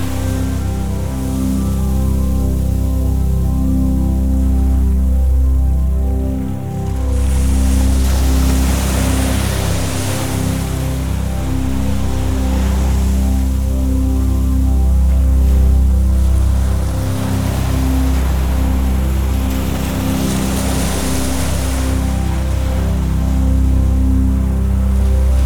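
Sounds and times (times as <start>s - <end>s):
ocean: 0.0s - 25.4s
relaxing music: 0.0s - 25.4s.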